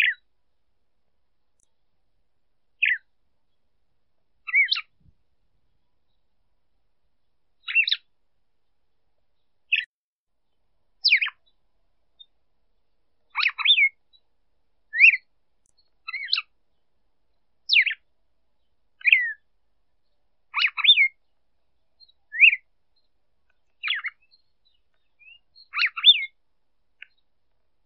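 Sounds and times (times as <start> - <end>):
female red-cowled cardinal calling: 0.0 - 0.2, 2.8 - 3.1, 4.4 - 5.0, 7.6 - 8.1, 9.7 - 9.9, 11.0 - 11.6, 13.3 - 14.2, 14.9 - 16.5, 17.7 - 18.0, 19.0 - 19.4, 20.0 - 21.4, 22.0 - 26.4.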